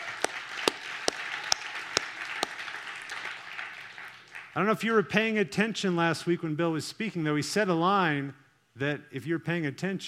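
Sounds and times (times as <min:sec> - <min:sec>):
audience applause: 0:00.0 - 0:04.6
speech: 0:04.6 - 0:10.0.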